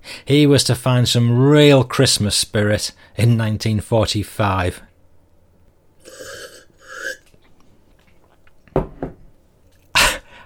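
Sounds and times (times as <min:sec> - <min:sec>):
speech: 0:00.3 - 0:04.9
person sipping a glass of Normandy Calvados: 0:06.0 - 0:08.6.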